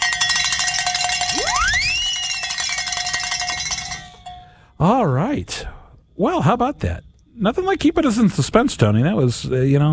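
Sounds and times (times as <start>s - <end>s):
bell rung to celebrate a pledge: 0.0s - 4.6s
speech: 4.8s - 9.9s.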